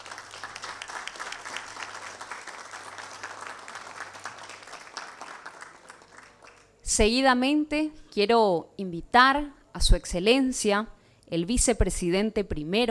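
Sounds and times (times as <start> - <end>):
audience applause: 0.0 - 6.7
speech: 6.9 - 12.9.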